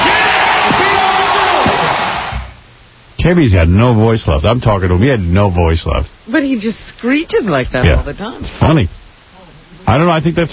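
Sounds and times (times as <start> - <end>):
loud concert crowd roaring and cheering: 0.0 - 2.5
speech: 3.3 - 9.0, 9.9 - 10.5.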